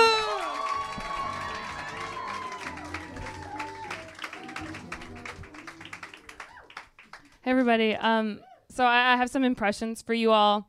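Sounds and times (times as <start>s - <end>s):
audience clapping and cheering: 0.0s - 7.9s
speech: 7.5s - 10.6s.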